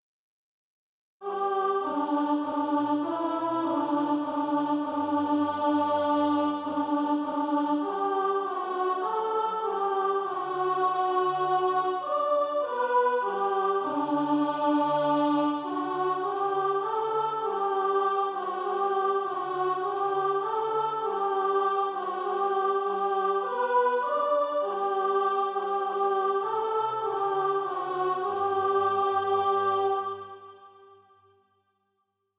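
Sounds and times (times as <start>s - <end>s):
alto voice singing SATB practice music: 1.2s - 31.0s.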